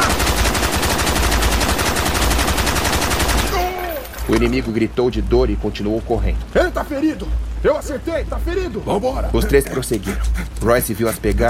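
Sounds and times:
burst of gunfire: 0.0s - 3.8s
speech: 4.3s - 11.4s.

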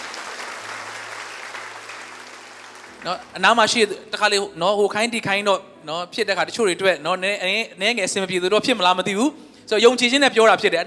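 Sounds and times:
congregation clapping in a Sunday church service: 0.0s - 3.8s
speech: 3.0s - 10.8s.

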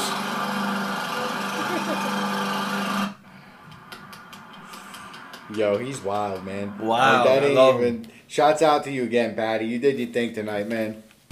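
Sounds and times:
lawnmower engine running indoors: 0.0s - 6.0s
laughter: 1.2s - 2.4s, 3.6s - 7.8s
speech: 5.5s - 11.0s.

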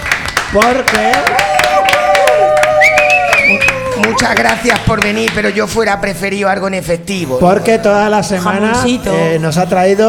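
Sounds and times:
audience applause: 0.0s - 5.4s
speech: 0.5s - 1.5s, 4.0s - 10.0s
whistles and cheering: 1.1s - 4.4s.

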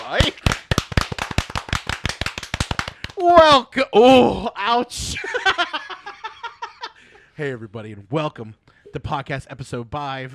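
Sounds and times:
hands clapping: 0.0s - 3.4s
speech: 0.1s - 0.4s, 3.2s - 6.1s, 7.4s - 10.3s.

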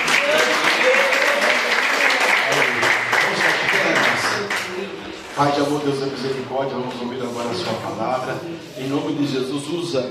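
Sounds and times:
audience clapping in worship: 0.0s - 4.8s
speech: 5.4s - 10.0s.

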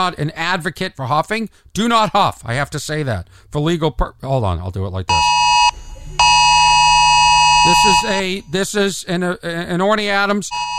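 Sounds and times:
speech: 0.0s - 5.4s, 7.6s - 10.7s
emergency alert tone in a comedy bit: 5.1s - 8.5s, 10.5s - 10.7s.

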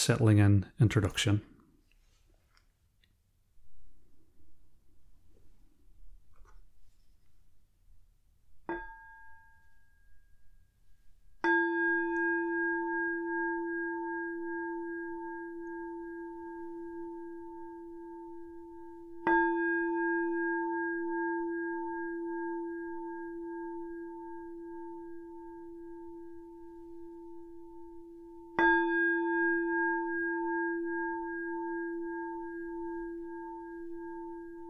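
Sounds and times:
speech: 0.0s - 1.5s
meditation bell rung: 8.7s - 34.6s.

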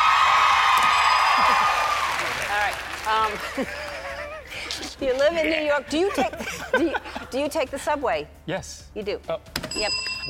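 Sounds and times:
smattering of audience applause: 0.0s - 4.4s
speech: 3.1s - 3.9s, 5.0s - 10.2s
laughter: 3.1s - 7.6s.

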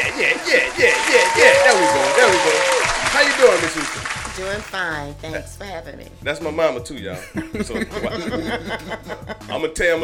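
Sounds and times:
laughter: 0.0s - 4.1s, 7.1s - 10.0s
crowd clapping: 0.0s - 4.8s
speech: 4.4s - 10.0s.

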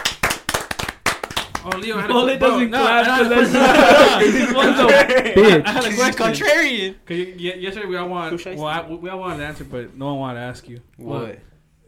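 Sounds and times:
people clapping: 0.0s - 5.3s
speech: 1.6s - 11.5s
laughter: 1.7s - 6.6s.

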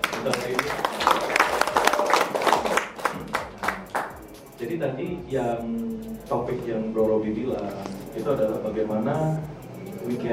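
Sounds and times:
audience clapping for Idea Fest at a panel talk: 0.0s - 4.2s
speech: 0.2s - 1.2s, 4.6s - 9.5s, 10.1s - 10.3s.

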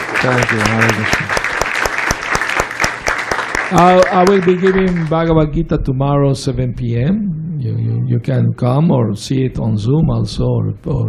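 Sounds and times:
audience applause: 0.0s - 5.3s
speech: 0.2s - 1.4s, 3.7s - 11.0s.

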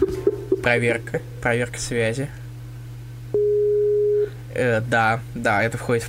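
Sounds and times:
speech: 0.6s - 2.4s, 4.6s - 6.0s
telephone ringing tones during a call: 3.4s - 4.3s.

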